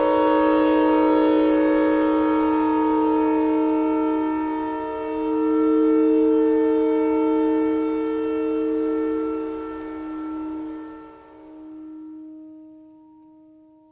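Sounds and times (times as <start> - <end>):
clarinet notes: 0.0 - 11.1
tornado siren: 0.0 - 13.8.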